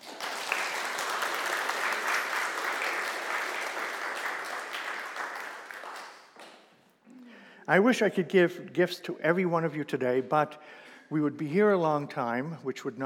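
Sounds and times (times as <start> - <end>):
audience applause: 0.0 - 6.6
speech: 7.7 - 13.0.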